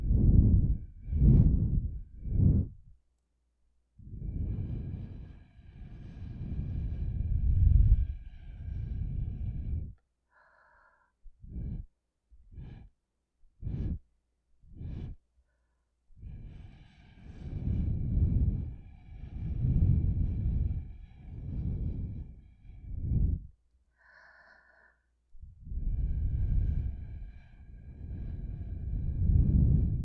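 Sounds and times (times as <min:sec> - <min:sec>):
blowing into ears through a straw: 0:00.0 - 0:02.8, 0:04.1 - 0:10.0, 0:17.1 - 0:23.5, 0:25.6 - 0:30.0.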